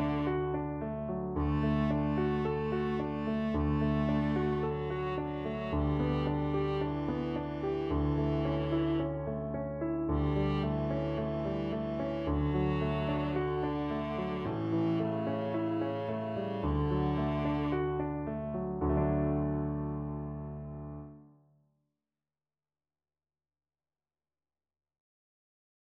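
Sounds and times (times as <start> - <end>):
viola: 0.0 - 19.6.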